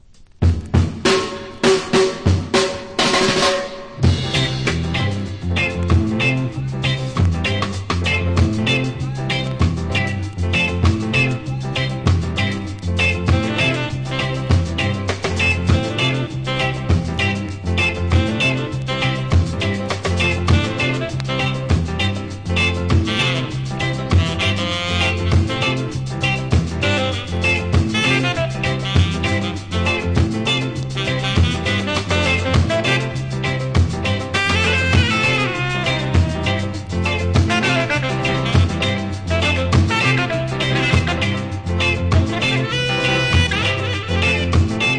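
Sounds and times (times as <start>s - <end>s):
reggae limbo music: 0.1s - 44.9s.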